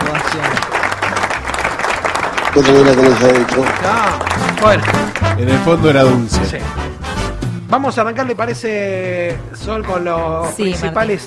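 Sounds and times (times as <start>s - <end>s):
audience applause: 0.0s - 5.8s
speech: 2.6s - 7.0s, 7.7s - 11.2s.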